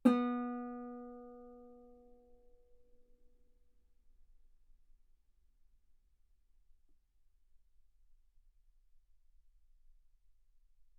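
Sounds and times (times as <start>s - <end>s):
guitar note B3: 0.0s - 1.7s.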